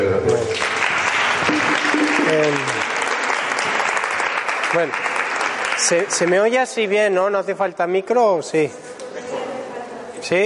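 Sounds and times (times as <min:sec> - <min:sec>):
audience applause: 0:00.3 - 0:06.6
speech: 0:04.8 - 0:05.1, 0:05.8 - 0:08.9, 0:10.2 - 0:10.4.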